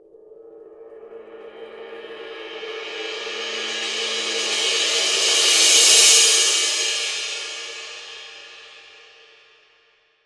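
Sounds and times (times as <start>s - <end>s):
22-inch crash cymbal roll: 2.4s - 9.4s.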